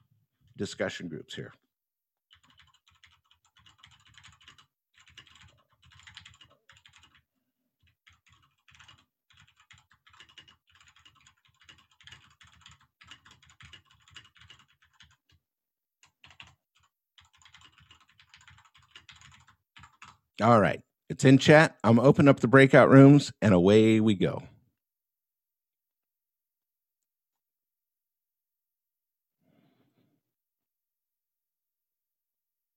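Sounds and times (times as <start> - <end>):
speech: 0.6 - 1.6, 20.4 - 24.5
quiet typing on a computer keyboard: 2.3 - 15.4, 16.0 - 20.3.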